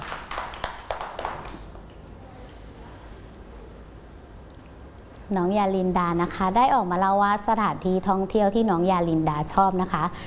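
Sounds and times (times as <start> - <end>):
children clapping: 0.0 - 1.8
speech: 5.3 - 10.2.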